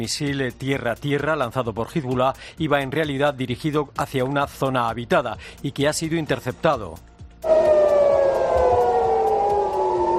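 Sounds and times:
speech: 0.0 - 7.7
air-raid siren wailing in a city: 7.4 - 10.1.

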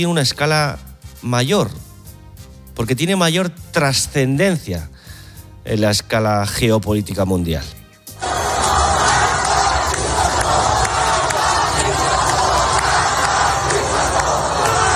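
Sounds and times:
speech: 0.0 - 1.8, 2.8 - 5.0, 5.6 - 7.8
protest crowd shouting in the street in Tehran: 8.2 - 14.9.

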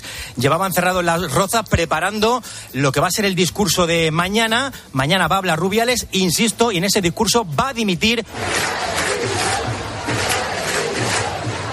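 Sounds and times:
speech: 0.4 - 9.4
football fans chanting for resignation: 8.3 - 11.7.

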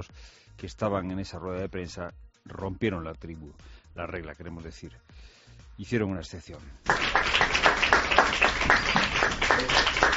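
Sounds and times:
speech: 0.0 - 10.1
applause: 6.8 - 10.1.

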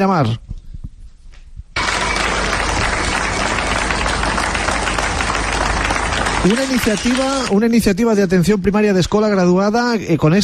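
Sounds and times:
speech: 0.0 - 0.4, 6.4 - 10.4
police officers applauding: 1.8 - 7.8.

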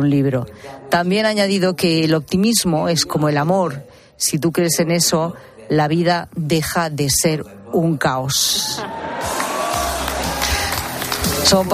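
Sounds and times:
speech: 0.0 - 9.4, 11.4 - 11.7
crowd cheering and applause for Michael J. Fox: 8.7 - 11.7.

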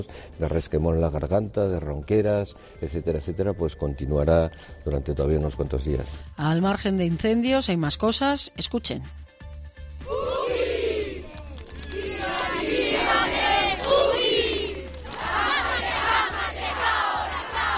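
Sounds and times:
speech: 0.0 - 9.3
schoolchildren chanting a haka war cry: 10.0 - 11.3, 11.9 - 17.7.

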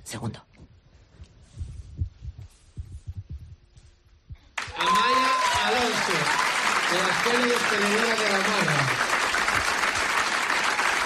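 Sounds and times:
speech: 0.1 - 0.5, 6.1 - 9.0
audience applause: 4.6 - 11.0.

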